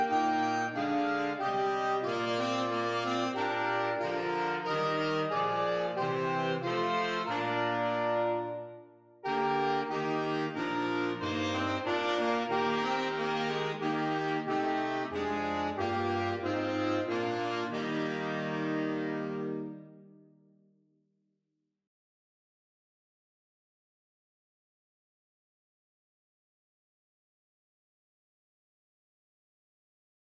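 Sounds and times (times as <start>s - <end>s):
saxophone quartet playing: 0.0s - 20.2s.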